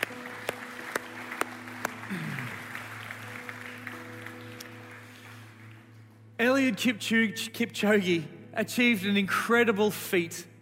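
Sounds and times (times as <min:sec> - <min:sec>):
audience applause: 0:00.0 - 0:06.0
speech: 0:02.1 - 0:02.4, 0:06.4 - 0:10.5.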